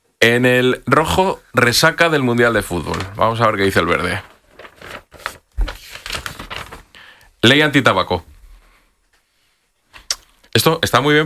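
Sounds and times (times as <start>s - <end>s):
speech: 0.2s - 4.3s, 7.4s - 8.3s, 10.6s - 11.2s
coloured paper envelope torn open: 4.0s - 6.9s.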